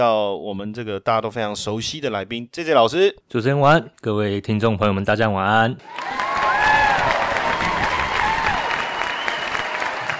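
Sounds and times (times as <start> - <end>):
speech: 0.0 - 6.2
audience cheering: 5.8 - 10.1.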